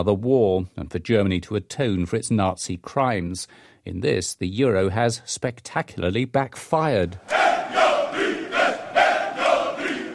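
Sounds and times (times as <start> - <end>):
speech: 0.0 - 7.8
Greek reservists parading and shouting a protest slogan: 7.2 - 10.1.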